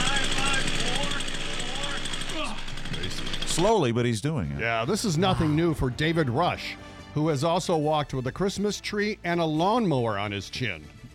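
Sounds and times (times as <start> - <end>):
chainsaw engine idling: 0.0 - 3.8
speech: 3.6 - 11.1.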